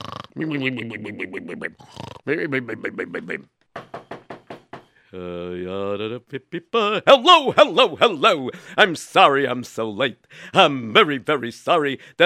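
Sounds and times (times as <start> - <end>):
voice loudly imitating snoring: 0.0 - 3.4
speech: 0.0 - 3.6, 5.1 - 12.2.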